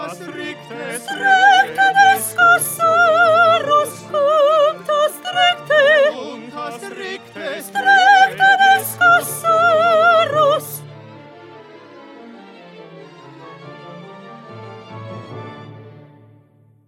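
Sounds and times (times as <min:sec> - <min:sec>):
soprano singing: 0:00.0 - 0:11.1.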